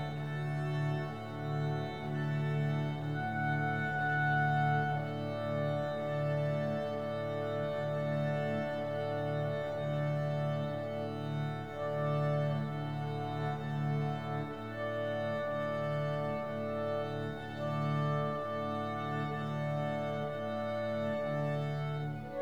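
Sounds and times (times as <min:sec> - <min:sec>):
clarinet quintet playing: 0:00.0 - 0:22.4.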